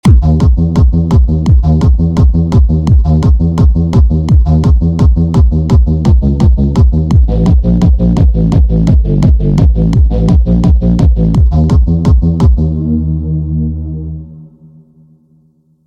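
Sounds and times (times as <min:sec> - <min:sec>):
bass: 0:00.0 - 0:15.6.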